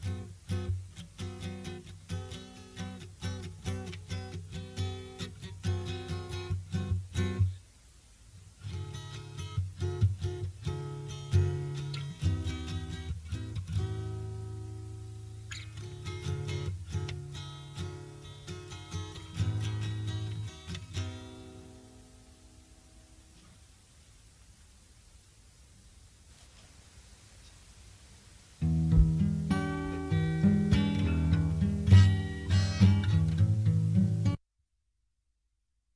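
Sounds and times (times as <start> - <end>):
plucked guitar jam: 0.0 - 7.5, 8.6 - 21.8, 28.6 - 34.4.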